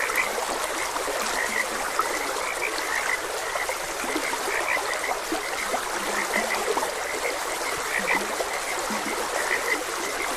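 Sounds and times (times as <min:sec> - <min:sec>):
frogs croaking: 0:00.0 - 0:10.3
trickling gurgling stream water: 0:00.0 - 0:10.3.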